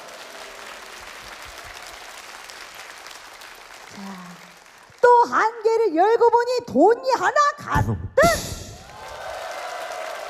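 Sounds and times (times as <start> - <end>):
audience applause: 0.0 - 5.2, 8.8 - 10.2
speech: 4.0 - 4.4, 5.2 - 8.5.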